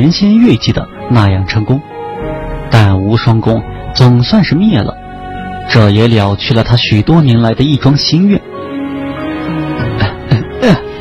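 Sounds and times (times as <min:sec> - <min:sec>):
speech: 0:00.0 - 0:01.9, 0:02.7 - 0:05.0, 0:05.7 - 0:08.5
repeated coughing: 0:09.8 - 0:10.9.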